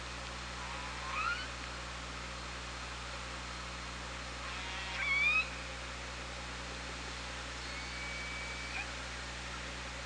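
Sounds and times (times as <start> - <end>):
hiss and low hum: 0.0 - 10.0
killer whale whistle-like calls: 0.7 - 1.5, 4.5 - 5.5, 7.6 - 9.0.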